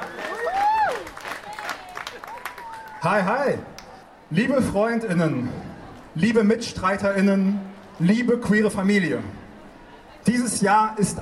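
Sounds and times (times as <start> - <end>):
audience applause: 0.0 - 3.1
speech: 3.0 - 3.7, 4.3 - 9.4, 10.2 - 11.2.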